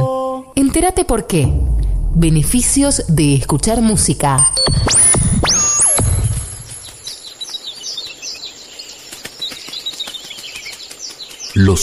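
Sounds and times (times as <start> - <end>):
speech: 0.7 - 5.6
birds chirping: 2.6 - 11.8.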